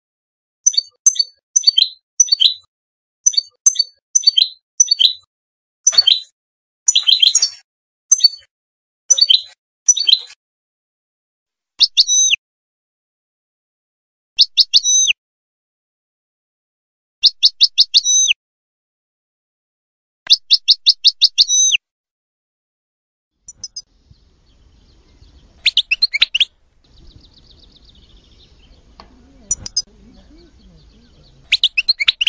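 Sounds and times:
bird song of high chirps: 0.6s - 5.3s, 5.9s - 6.3s, 6.9s - 8.5s, 9.1s - 10.4s, 11.8s - 12.4s, 14.4s - 15.2s, 17.2s - 18.4s, 20.3s - 21.8s, 23.4s - 32.2s
soft rumble: 26.5s - 31.5s.

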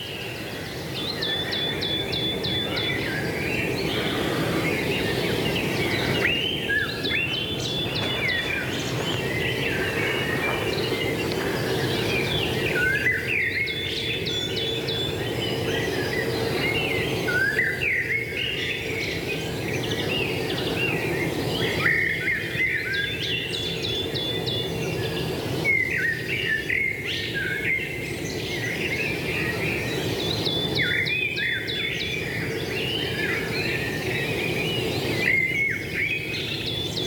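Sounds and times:
blackbirds singing in deciduous woodland: 0.0s - 37.0s
thrushes singing in deciduous woodland: 0.7s - 18.3s
coal tit singing in deciduous woodland: 1.9s - 14.9s.

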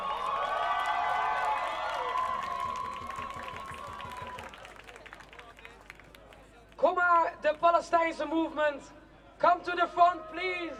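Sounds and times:
crowd applause at an anti-racism anti-fascism demonstration: 0.0s - 6.3s
speech: 7.4s - 10.7s.

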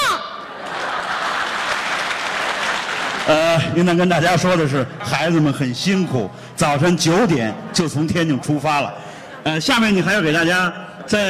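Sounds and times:
laughter: 0.4s - 2.3s, 6.9s - 11.2s
elderly audience clapping for child performers at a Beijing opera and folk-art show: 0.6s - 3.6s
speech: 3.2s - 11.2s.

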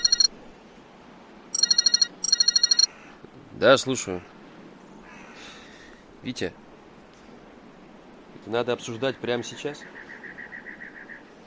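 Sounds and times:
mobile phone ringing in a pocket: 0.0s - 0.3s, 1.6s - 2.9s
speech: 3.6s - 4.4s, 6.2s - 6.6s, 8.4s - 10.0s.

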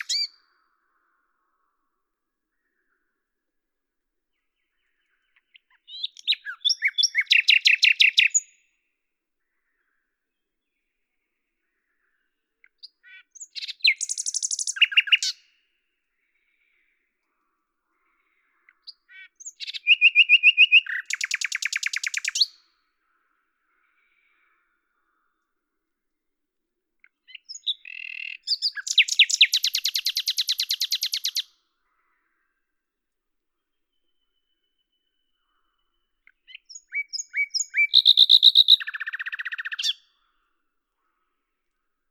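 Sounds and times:
common nightingale song: 0.0s - 0.6s, 4.6s - 8.7s, 12.7s - 15.5s, 18.7s - 22.6s, 27.0s - 31.5s, 33.9s - 40.1s.

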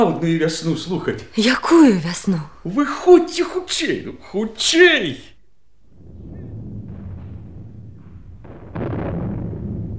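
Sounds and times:
speech: 0.0s - 5.3s
distant artillery fire: 5.9s - 9.9s.

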